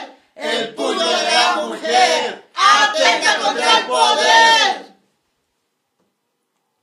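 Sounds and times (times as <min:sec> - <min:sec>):
choir singing: 0:00.4 - 0:05.0.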